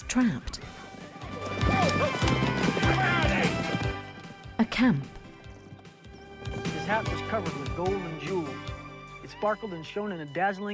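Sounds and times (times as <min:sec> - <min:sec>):
speech: 0:00.1 - 0:00.6, 0:04.8 - 0:05.2, 0:06.9 - 0:08.7, 0:09.3 - 0:10.7
horse whinnying: 0:00.8 - 0:07.2
horse galloping hard along a narrow, shallow stream: 0:00.8 - 0:08.0.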